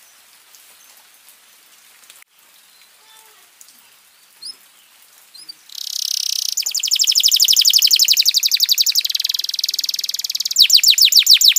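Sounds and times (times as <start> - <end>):
domestic canary chirps and trill: 4.4 - 11.5.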